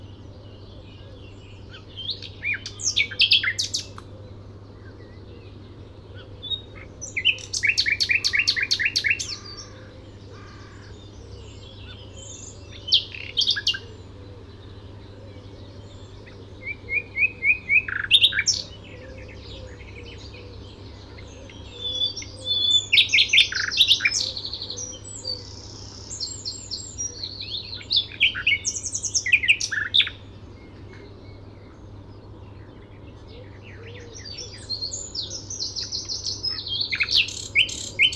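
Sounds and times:
faint low hum: 0:00.0 - 0:37.2
common nightingale song: 0:00.0 - 0:38.1.

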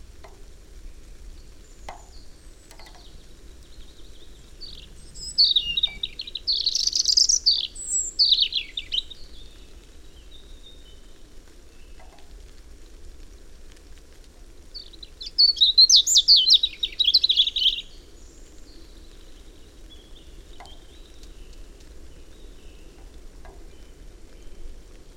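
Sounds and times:
European robin singing: 0:01.4 - 0:12.2, 0:14.8 - 0:24.7.

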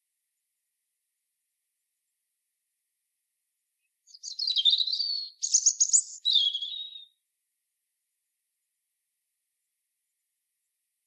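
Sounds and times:
European robin song: 0:03.8 - 0:07.2.

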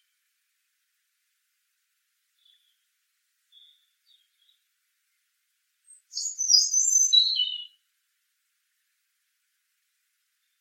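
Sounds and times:
European robin singing, Erithacus rubecula: 0:02.4 - 0:02.9, 0:03.5 - 0:04.7, 0:05.8 - 0:07.8.

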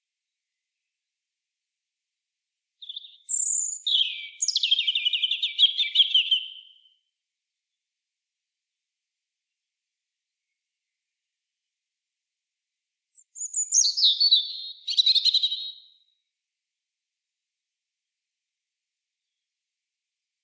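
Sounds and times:
European robin song: 0:02.8 - 0:07.1, 0:13.2 - 0:16.1.

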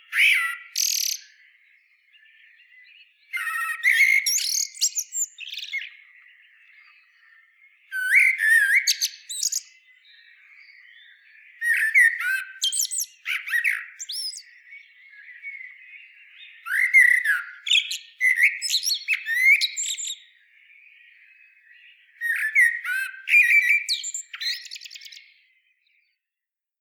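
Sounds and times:
common blackbird singing: 0:00.0 - 0:26.2
background birdsong: 0:00.0 - 0:26.7.

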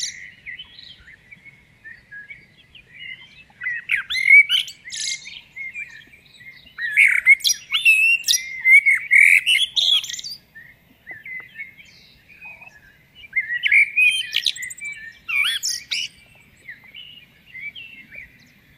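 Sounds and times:
common blackbird singing: 0:00.0 - 0:18.7
faint noise: 0:00.0 - 0:18.7.

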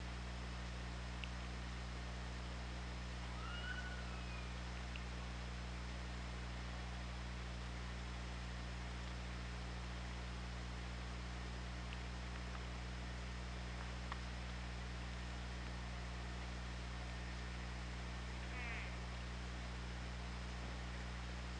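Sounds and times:
low underwater hum: 0:00.0 - 0:21.5
orca calls: 0:03.2 - 0:04.6, 0:18.5 - 0:19.0.

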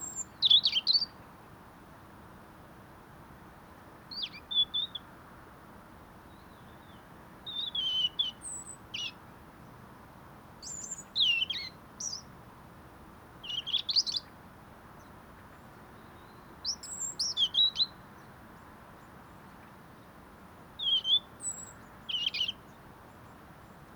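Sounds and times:
European robin singing: 0:00.0 - 0:01.2, 0:06.4 - 0:09.2, 0:10.6 - 0:12.3, 0:13.4 - 0:14.3, 0:16.0 - 0:18.0, 0:20.8 - 0:22.7.

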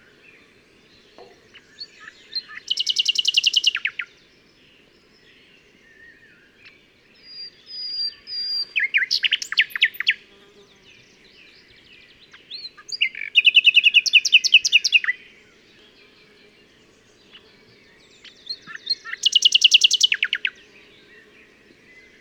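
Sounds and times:
common nightingale singing: 0:00.0 - 0:04.2, 0:05.8 - 0:10.2, 0:11.2 - 0:15.3, 0:17.2 - 0:22.1.

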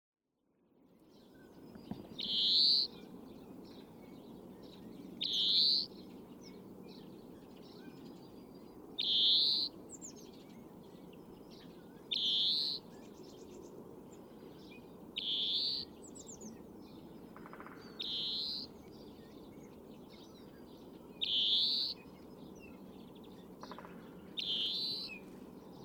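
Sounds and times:
other birds chirping: 0:01.3 - 0:25.8
European greenfinch wheezing calls: 0:02.2 - 0:03.0, 0:05.2 - 0:06.0, 0:09.0 - 0:09.8, 0:12.1 - 0:12.9, 0:15.2 - 0:16.0, 0:18.0 - 0:18.7, 0:21.2 - 0:22.0, 0:24.4 - 0:25.2.

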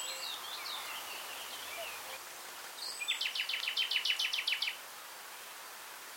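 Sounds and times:
common nightingale singing: 0:00.0 - 0:02.2, 0:02.8 - 0:04.8
steady background hiss: 0:00.0 - 0:06.1.

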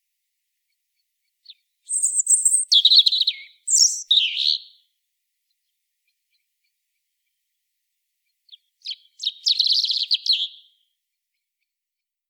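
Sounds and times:
European robin singing: 0:01.4 - 0:04.9, 0:08.5 - 0:10.8.

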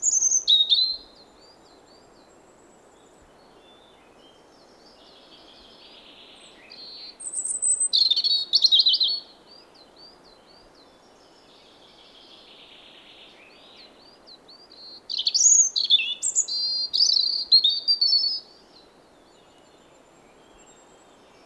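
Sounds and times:
European robin whistled phrases: 0:00.0 - 0:02.2, 0:04.6 - 0:18.6.

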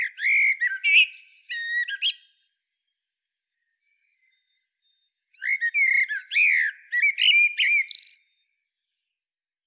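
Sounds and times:
Eurasian blackbird singing melodious phrases: 0:00.0 - 0:02.6, 0:04.0 - 0:08.4.

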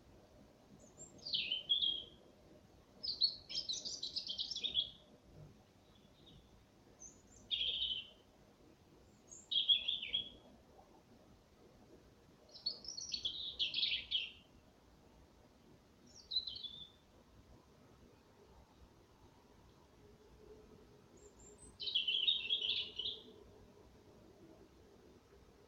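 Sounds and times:
European robin singing: 0:00.8 - 0:02.2, 0:03.0 - 0:05.0, 0:05.8 - 0:08.2, 0:09.1 - 0:10.4, 0:12.5 - 0:14.5, 0:16.1 - 0:17.0, 0:21.2 - 0:23.4.

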